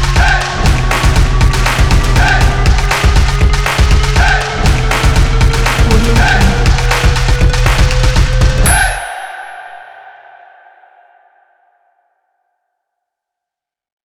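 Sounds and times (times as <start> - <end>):
drumming: 0.0 - 9.1.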